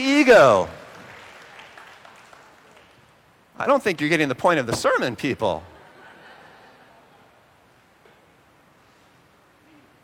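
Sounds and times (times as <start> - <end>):
speech: 0.0 - 0.8, 3.6 - 5.7
audience applause: 0.8 - 3.0.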